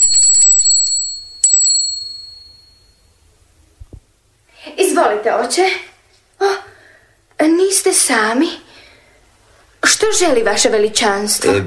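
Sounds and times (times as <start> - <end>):
hand bell ringing: 0.0 - 3.1
speech: 5.0 - 6.6, 7.4 - 8.6, 10.0 - 11.6.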